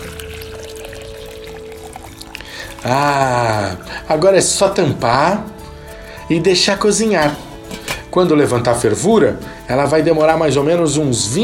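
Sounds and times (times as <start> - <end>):
litre of water poured into a hot pan of beetroot: 0.0 - 4.7
speech: 2.6 - 5.6, 6.3 - 7.4, 8.2 - 11.4.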